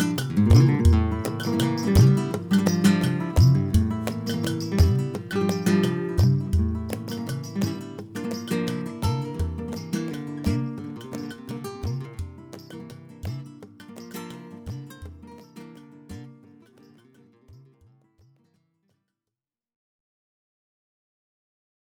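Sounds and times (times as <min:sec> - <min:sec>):
guitarist playing tangos: 0:00.0 - 0:16.4.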